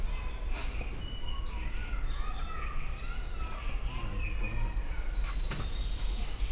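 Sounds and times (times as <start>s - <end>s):
faint red-handed tamarin: 0.1s - 6.5s.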